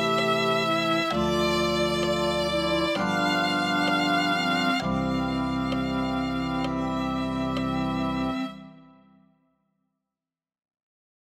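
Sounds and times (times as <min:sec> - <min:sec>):
violin playing a hymn: 0:00.0 - 0:09.1.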